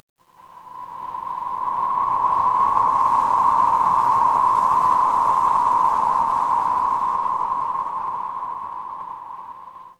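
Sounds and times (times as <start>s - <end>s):
horror wind whisper: 0.2s - 9.9s.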